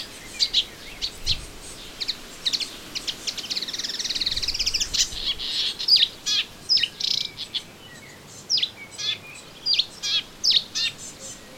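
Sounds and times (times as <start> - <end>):
melodious warbler singing in a garden: 0.0 - 11.5.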